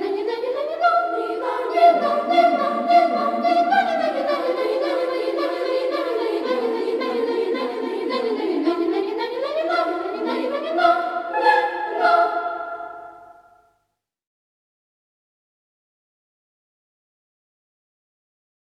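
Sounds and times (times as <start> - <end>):
large children's choir singing: 0.0 - 13.5.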